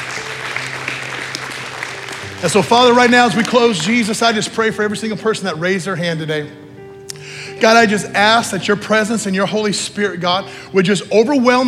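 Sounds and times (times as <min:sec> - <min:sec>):
crowd applause: 0:00.0 - 0:04.4
speech: 0:02.4 - 0:06.6, 0:07.6 - 0:11.6.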